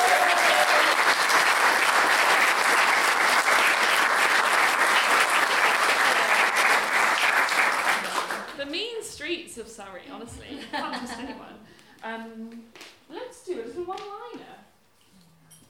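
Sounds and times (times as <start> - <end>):
audience applause: 0.0 - 8.6.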